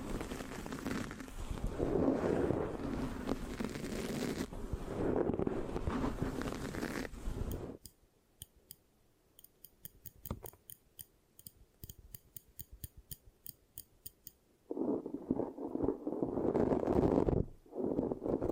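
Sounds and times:
rough scratching on a microphone: 0:00.0 - 0:07.8, 0:14.7 - 0:18.5
sharp evenly spaced clicks: 0:09.4 - 0:14.4.

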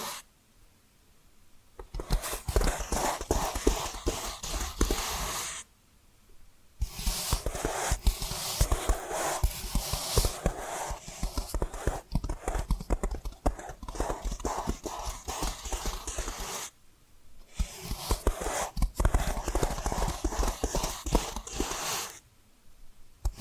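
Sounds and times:
quick tapping and scratching: 0:01.8 - 0:05.6, 0:06.8 - 0:16.7, 0:17.5 - 0:22.2.

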